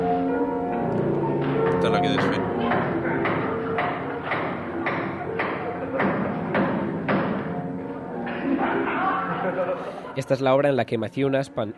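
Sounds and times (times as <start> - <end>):
piano being smashed with hammers: 0.6 - 9.5
laughter: 8.2 - 10.5
speech: 10.2 - 11.7.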